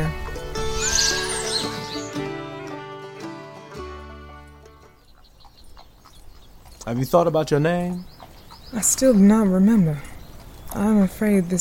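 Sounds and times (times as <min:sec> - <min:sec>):
horse whinnying: 0:00.6 - 0:02.1
speech: 0:06.9 - 0:08.1, 0:08.7 - 0:10.1, 0:10.7 - 0:11.5.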